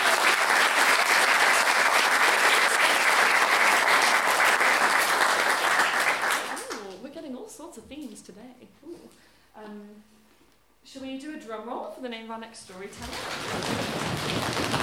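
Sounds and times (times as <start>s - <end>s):
audience applause at a storytelling event: 0.0s - 6.9s, 13.0s - 14.8s
speech: 11.5s - 14.8s.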